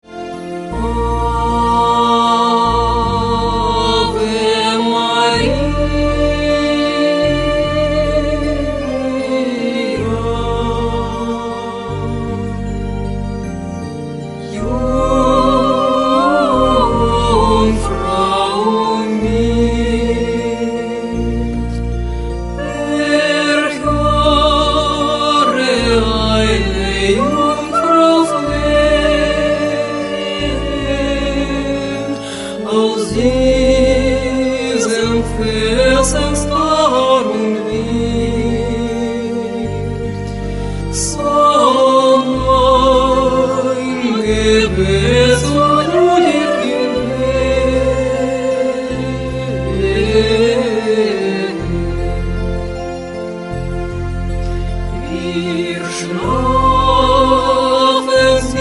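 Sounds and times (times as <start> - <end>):
person singing a hymn in German: 0.0 - 58.5.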